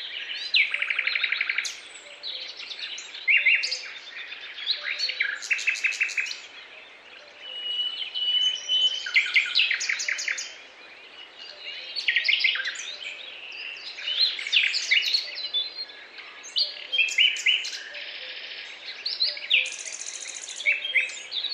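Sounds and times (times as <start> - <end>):
birds chirping in a forest: 0.0 - 21.5.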